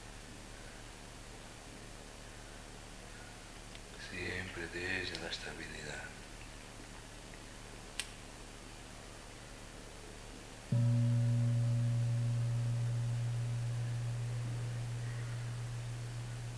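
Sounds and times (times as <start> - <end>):
speech: 4.1 - 6.2
brief click: 8.0 - 8.2
gong ringing: 10.7 - 16.5.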